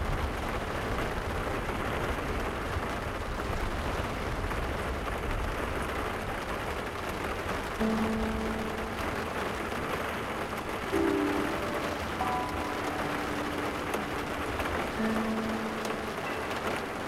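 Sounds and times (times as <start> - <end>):
rain ambience on a car: 0.0 - 17.0.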